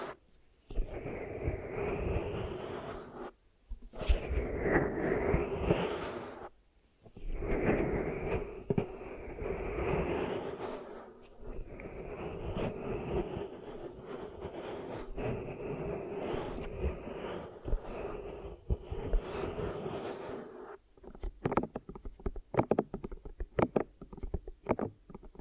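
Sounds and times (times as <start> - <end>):
ear massage and cleaning rubbing: 0.0 - 6.5, 7.2 - 25.3
clicks and taps: 21.0 - 25.3.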